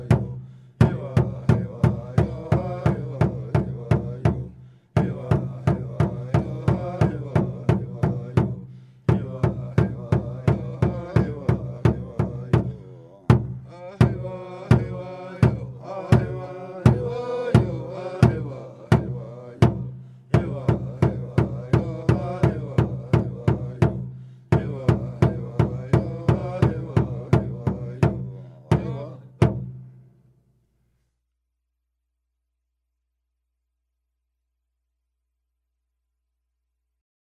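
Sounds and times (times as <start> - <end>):
traditional Kickapoo indigenous singing: 0.0 - 29.6.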